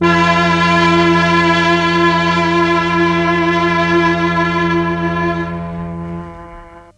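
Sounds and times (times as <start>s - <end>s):
Mellotron M400 strings: 0.0s - 6.9s.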